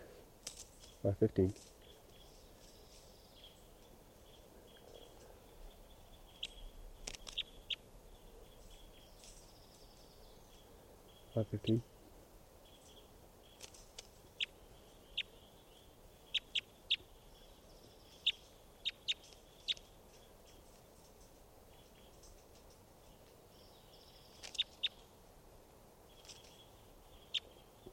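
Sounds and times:
soft hiss: 0:00.0 - 0:27.9
speech: 0:01.0 - 0:01.7, 0:11.4 - 0:11.9
bird chirps: 0:01.8 - 0:11.8, 0:12.6 - 0:20.8, 0:23.0 - 0:25.1, 0:26.1 - 0:27.9.

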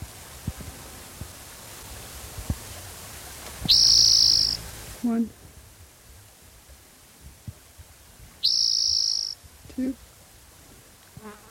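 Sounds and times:
steady hiss: 0:00.0 - 0:11.4
speech: 0:03.7 - 0:03.9, 0:05.0 - 0:05.4, 0:09.8 - 0:10.0
spotted toad calling: 0:03.7 - 0:04.6, 0:08.4 - 0:09.4.

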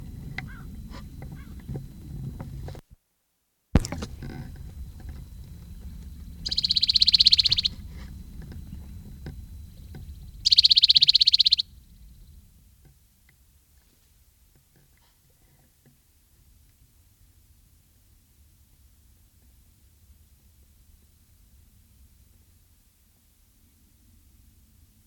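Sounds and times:
bird calls exchanged between two males: 0:00.0 - 0:02.8, 0:03.8 - 0:12.5
steady low rumble: 0:00.0 - 0:02.9, 0:03.8 - 0:13.2.

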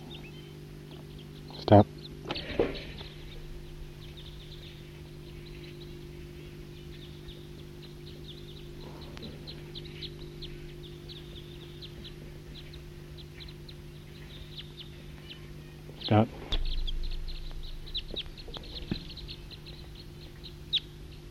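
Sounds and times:
wild bird calling: 0:00.0 - 0:21.2.

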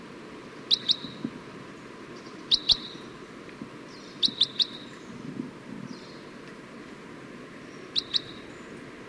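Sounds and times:
Red Crossbill calls: 0:00.7 - 0:01.3, 0:02.2 - 0:03.1, 0:03.9 - 0:05.0, 0:07.8 - 0:08.5.

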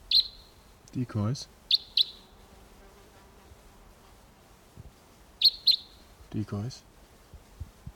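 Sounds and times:
wild bird chirping: 0:00.0 - 0:00.6, 0:01.7 - 0:02.4, 0:05.4 - 0:06.1
speech: 0:00.9 - 0:01.6, 0:06.3 - 0:06.9.

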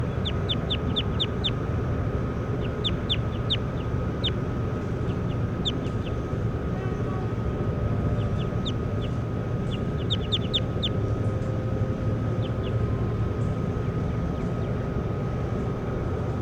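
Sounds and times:
bird chirps: 0:00.0 - 0:01.6, 0:02.3 - 0:06.4, 0:08.1 - 0:11.5, 0:12.3 - 0:12.8
low rumbling hum: 0:00.0 - 0:16.4.

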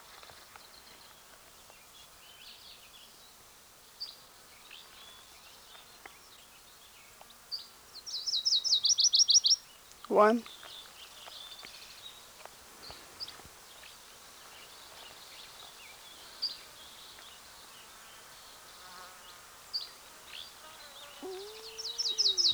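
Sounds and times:
Virginia's warbler singing: 0:08.1 - 0:12.2, 0:19.8 - 0:22.5
speech: 0:10.2 - 0:10.5.

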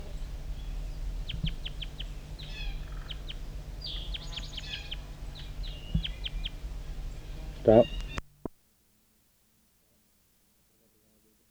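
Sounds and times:
wild bird calling near the bottom of the hollow: 0:00.0 - 0:08.4
speech: 0:07.7 - 0:08.0.

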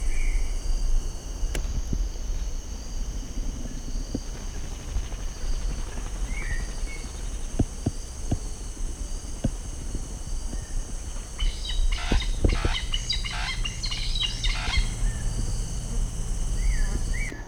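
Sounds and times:
insects or crickets humming: 0:00.0 - 0:17.4
thin chirps: 0:10.1 - 0:17.4
large bird calling: 0:10.5 - 0:17.4.

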